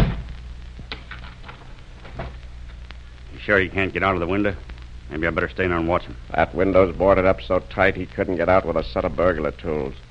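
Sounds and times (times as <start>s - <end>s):
door thudding shut: 0.0s - 0.3s
low hum: 0.0s - 10.0s
speech: 3.4s - 10.0s.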